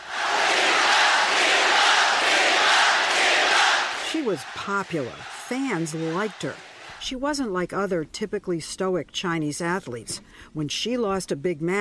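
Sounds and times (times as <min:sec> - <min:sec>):
large crowd cheering and roaring: 0:00.0 - 0:07.0
speech: 0:04.2 - 0:11.7.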